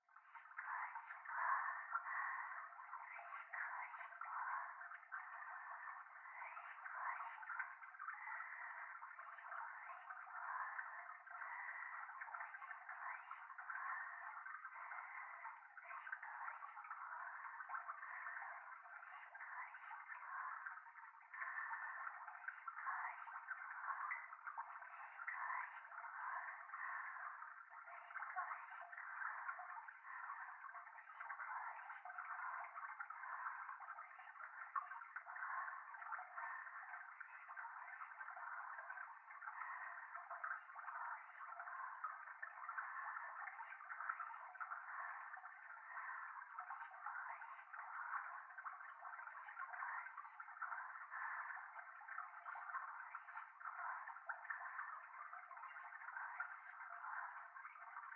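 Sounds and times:
babbling river stream: 0.2 - 58.1.

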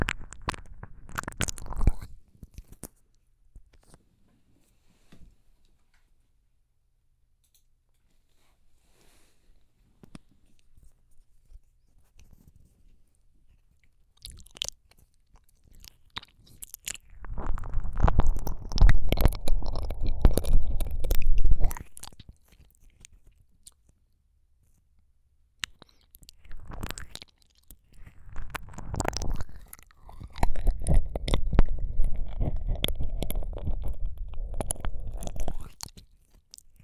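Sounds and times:
slow sticky ear licking ASMR: 0.0 - 2.9, 14.2 - 23.8, 25.6 - 36.8.

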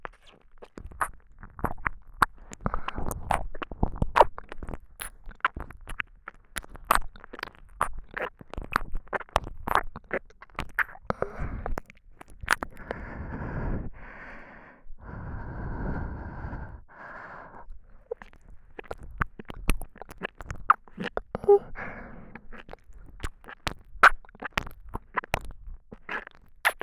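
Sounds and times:
soft tongue licking: 0.0 - 13.0, 17.9 - 26.8
sucking sounds: 10.6 - 26.8.

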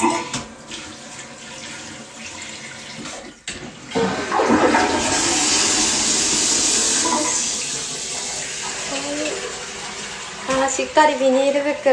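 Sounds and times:
toilet flushing: 0.0 - 11.9
speech: 10.8 - 11.9.

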